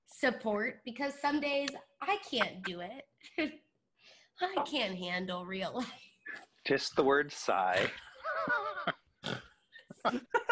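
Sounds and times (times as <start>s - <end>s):
speech: 0.2s - 3.7s, 4.4s - 9.0s, 10.0s - 10.4s
laughter: 2.3s - 2.8s, 6.7s - 9.0s, 9.8s - 10.5s
short nasal pig-like snorts: 9.2s - 9.5s.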